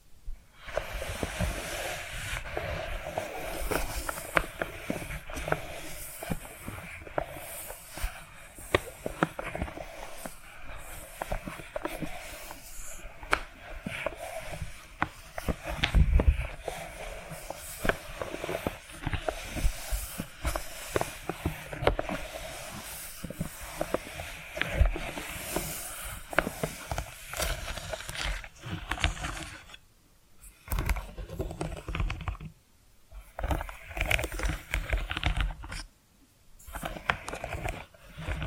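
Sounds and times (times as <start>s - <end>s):
tapping and scratching: 0.7s - 29.8s, 30.6s - 32.6s, 33.2s - 35.9s, 36.6s - 38.4s.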